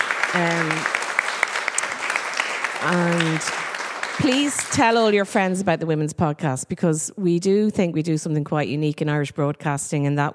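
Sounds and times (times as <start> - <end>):
audience applause: 0.0 - 5.3
speech: 0.3 - 1.0, 2.8 - 3.6, 4.2 - 10.3.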